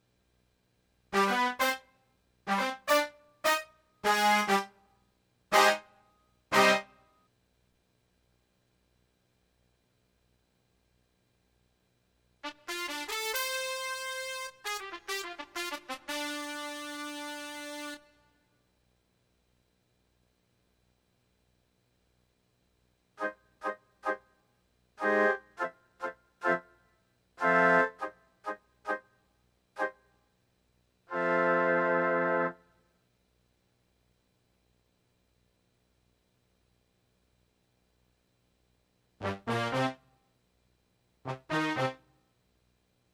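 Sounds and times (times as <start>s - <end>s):
brass instruments: 1.2s - 1.9s, 2.5s - 4.8s, 5.5s - 7.0s, 12.4s - 18.3s, 25.0s - 26.7s, 27.4s - 29.0s, 31.1s - 32.6s, 39.2s - 40.1s, 41.3s - 42.1s.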